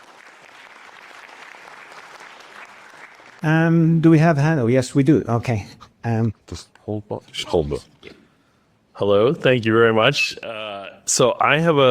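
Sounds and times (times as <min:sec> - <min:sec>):
audience applause: 0:00.0 - 0:03.4
speech: 0:03.4 - 0:08.2, 0:09.0 - 0:11.8.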